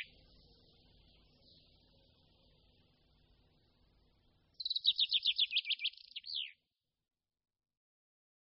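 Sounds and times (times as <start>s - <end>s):
common chaffinch singing: 0.0s - 2.1s, 4.6s - 6.6s.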